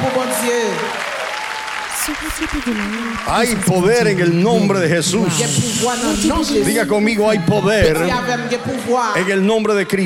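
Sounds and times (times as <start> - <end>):
audience clapping: 0.0 - 6.2
voice rising above the applause: 1.8 - 8.6
speech: 2.1 - 10.0.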